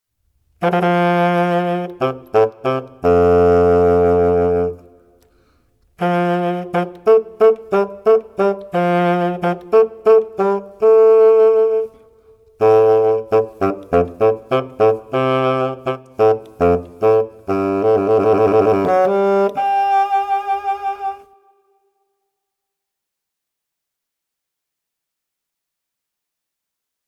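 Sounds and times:
bassoon: 0.6 - 5.4, 6.0 - 21.8.

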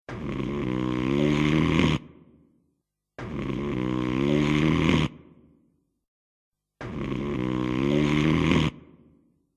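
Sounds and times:
person snoring: 0.1 - 2.5, 3.2 - 5.5, 6.8 - 9.5.

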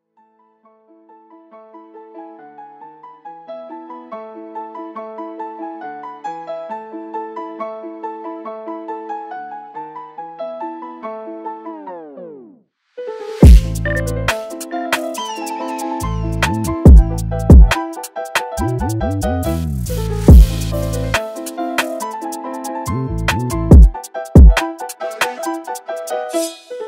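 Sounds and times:
drill remix of a classical piece: 13.4 - 26.8.

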